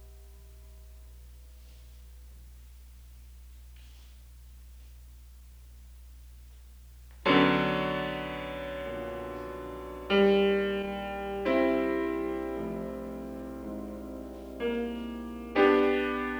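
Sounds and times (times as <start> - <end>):
six small piano pieces: 7.3 - 16.3.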